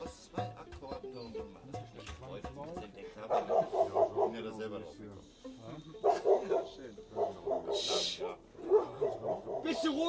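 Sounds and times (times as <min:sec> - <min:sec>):
neighbour's dog barking and whimpering: 0:03.3 - 0:04.4, 0:06.0 - 0:10.0
speech: 0:04.7 - 0:07.2.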